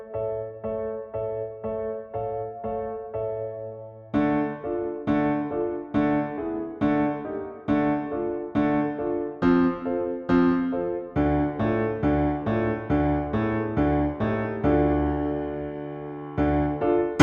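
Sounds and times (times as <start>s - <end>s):
piano accompaniment: 0.0s - 17.2s.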